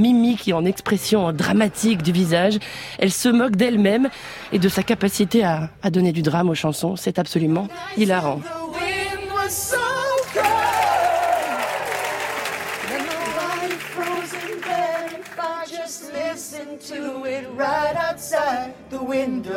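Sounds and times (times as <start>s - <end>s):
speech: 0.0s - 9.8s, 17.6s - 19.5s
studio audience applause: 10.1s - 15.8s.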